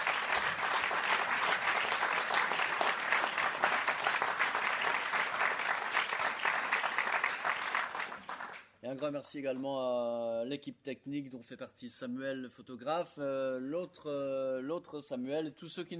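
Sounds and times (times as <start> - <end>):
audience applause: 0.0 - 8.6
speech: 9.0 - 15.9.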